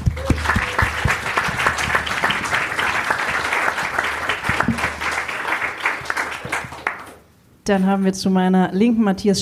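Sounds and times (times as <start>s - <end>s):
audience applause: 0.0s - 7.2s
speech: 7.7s - 9.4s.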